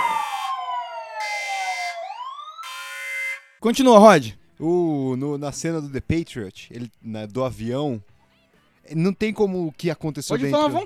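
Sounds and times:
spoiler warning jingle with siren: 0:00.0 - 0:03.6
speech: 0:03.6 - 0:08.1, 0:08.8 - 0:10.8.

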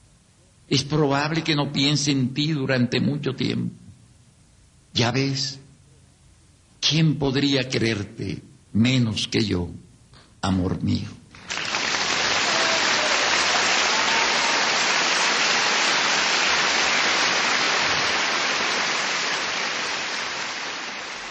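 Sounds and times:
speech: 0:00.7 - 0:03.8, 0:05.0 - 0:05.6, 0:06.8 - 0:09.8, 0:10.4 - 0:11.2
thunderous crowd applause: 0:11.4 - 0:21.2.

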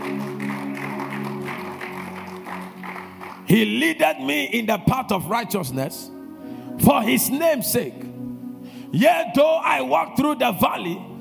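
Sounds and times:
audience clapping: 0:00.0 - 0:03.9
speech: 0:03.5 - 0:06.2, 0:06.8 - 0:08.0, 0:08.9 - 0:11.1.

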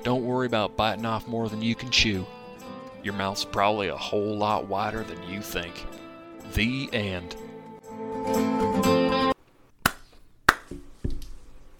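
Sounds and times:
speech: 0:00.4 - 0:02.4, 0:03.0 - 0:07.4, 0:08.2 - 0:09.0
hand claps: 0:09.8 - 0:10.8.

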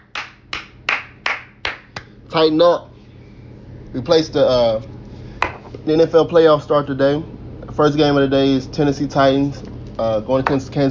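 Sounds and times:
hand clapping: 0:00.0 - 0:02.1
speech: 0:02.3 - 0:02.9, 0:03.9 - 0:05.0, 0:05.8 - 0:10.9.

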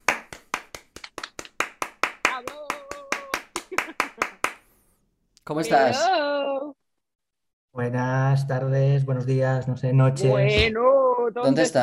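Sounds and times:
hand clapping: 0:00.0 - 0:04.7
laughter: 0:03.6 - 0:04.4
speech: 0:05.5 - 0:06.3, 0:07.8 - 0:11.8.

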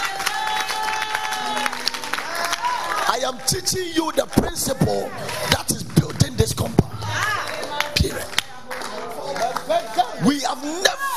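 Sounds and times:
church congregation clapping and cheering during a sermon: 0:00.0 - 0:11.1
crowd murmur: 0:00.0 - 0:11.1
speech: 0:03.2 - 0:05.8, 0:06.4 - 0:07.4, 0:08.0 - 0:08.4, 0:09.7 - 0:11.1.

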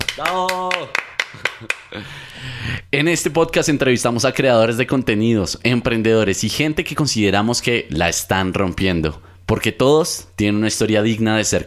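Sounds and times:
sustained vocal whoop: 0:00.0 - 0:01.0
hand claps: 0:00.0 - 0:02.0
speech: 0:00.2 - 0:11.6.

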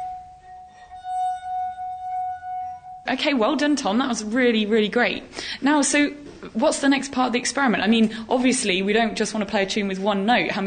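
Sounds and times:
glass with water ringing: 0:00.0 - 0:03.1
speech: 0:03.1 - 0:10.6.

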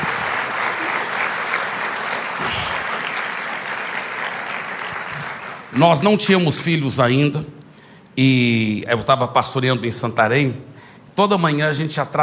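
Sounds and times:
audience applause: 0:00.0 - 0:06.0
speech: 0:05.7 - 0:07.6, 0:08.2 - 0:12.2.

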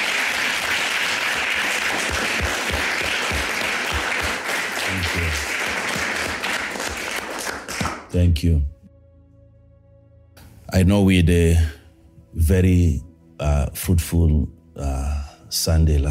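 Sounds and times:
audience applauding: 0:00.0 - 0:08.2
speech: 0:08.1 - 0:08.7, 0:10.7 - 0:11.8, 0:12.4 - 0:16.1.

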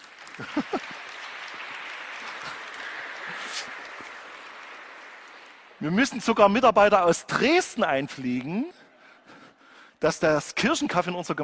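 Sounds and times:
audience clapping: 0:00.0 - 0:08.4
laughter: 0:00.3 - 0:01.2
speech: 0:00.4 - 0:01.1, 0:05.8 - 0:08.8, 0:10.0 - 0:11.4.

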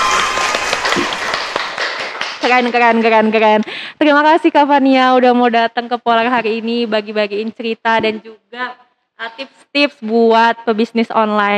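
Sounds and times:
audience clapping: 0:00.0 - 0:03.7
speech: 0:02.4 - 0:11.5.

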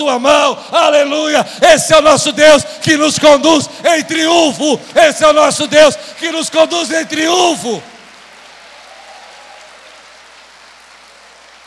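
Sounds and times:
speech: 0:00.0 - 0:07.9
audience applause: 0:05.8 - 0:11.6.

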